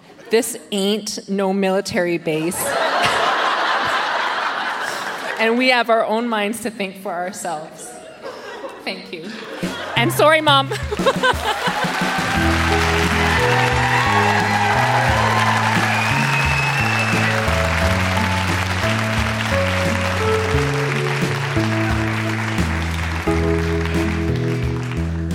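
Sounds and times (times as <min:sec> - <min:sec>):
speech: 0:00.3 - 0:02.9, 0:05.4 - 0:07.9, 0:08.8 - 0:13.7
laughter: 0:02.6 - 0:05.4, 0:07.9 - 0:20.5
upbeat music bed with a thumping, stepping bass line: 0:09.7 - 0:25.3
audience clapping and cheering: 0:10.6 - 0:25.3.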